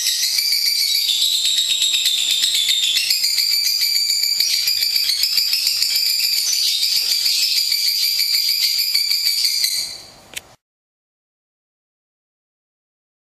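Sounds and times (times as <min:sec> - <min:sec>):
lovebird song: 0:00.0 - 0:10.2.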